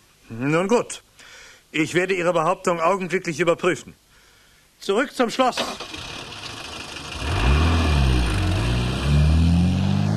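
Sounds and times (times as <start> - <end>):
speech: 0.3 - 1.1, 1.7 - 4.0, 4.8 - 5.9
car engine pulling away: 5.8 - 10.1.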